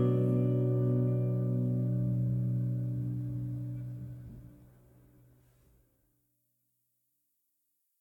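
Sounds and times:
ambient guitar: 0:00.0 - 0:05.0.

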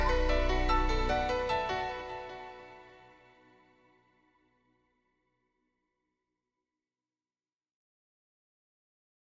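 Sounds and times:
rhythm: 0:00.0 - 0:02.4.

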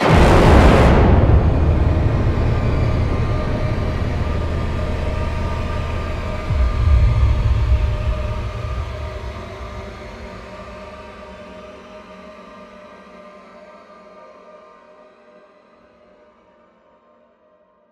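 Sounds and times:
impact: 0:00.0 - 0:12.2.

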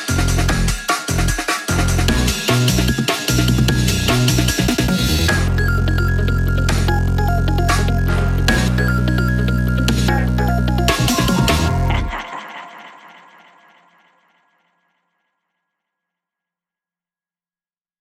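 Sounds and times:
spooky instrumental music mix: 0:00.0 - 0:13.1.

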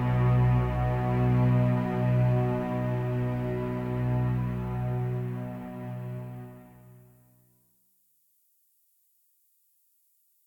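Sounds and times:
ambient strings stem: 0:00.0 - 0:07.1.

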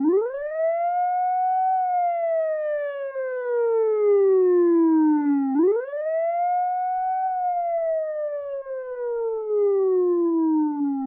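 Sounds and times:
siren: 0:00.0 - 0:11.0.

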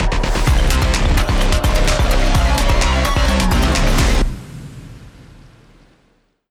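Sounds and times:
battle victory music: 0:00.0 - 0:04.4.

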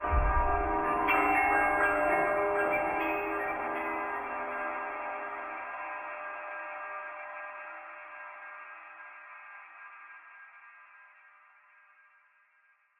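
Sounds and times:
bells sting: 0:00.0 - 0:06.2.

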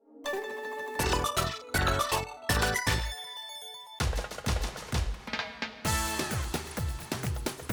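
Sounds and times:
background music: 0:00.0 - 0:04.4, 0:05.9 - 0:07.6.

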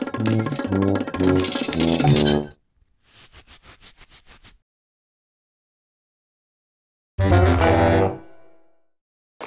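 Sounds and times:
musical score: 0:00.1 - 0:02.4, 0:07.2 - 0:08.7.

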